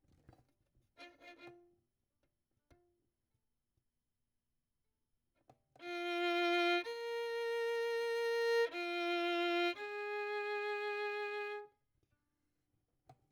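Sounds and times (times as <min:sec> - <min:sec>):
violin: 0:01.0 - 0:01.8, 0:05.8 - 0:11.8.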